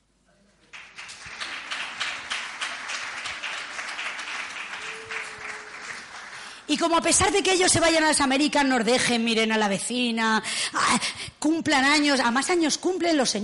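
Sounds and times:
audience applause: 0.7s - 6.7s
speech: 6.7s - 13.4s.

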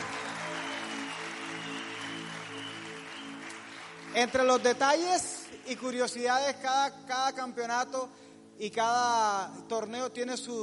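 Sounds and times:
applause: 0.0s - 6.4s
speech: 4.2s - 10.6s.

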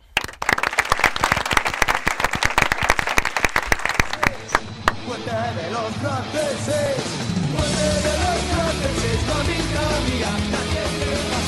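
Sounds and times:
studio audience applause: 0.2s - 5.2s
speech: 5.3s - 11.3s.

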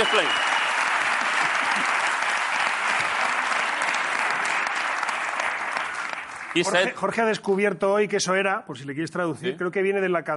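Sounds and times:
speech: 0.0s - 0.5s, 6.6s - 10.3s
audience applause: 0.0s - 7.0s.

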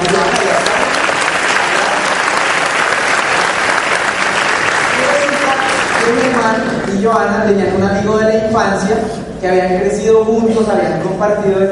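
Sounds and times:
audience applause: 0.0s - 6.9s
speech: 7.1s - 11.6s.

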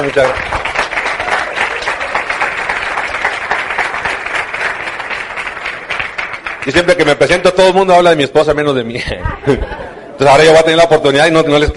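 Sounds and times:
speech: 0.0s - 0.6s, 6.6s - 11.7s
audience applause: 0.0s - 7.6s
laughter: 8.9s - 10.4s.

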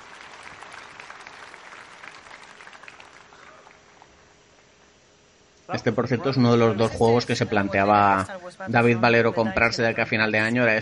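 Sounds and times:
conference audience applause at Sony's Paris Games Week 2015 press event: 0.0s - 4.4s
speech: 5.7s - 10.7s.

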